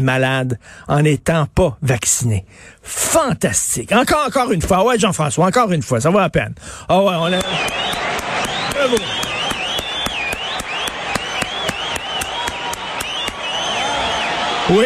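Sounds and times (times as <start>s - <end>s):
speech: 0.0s - 9.3s, 14.7s - 14.8s
audience applause: 7.2s - 14.8s.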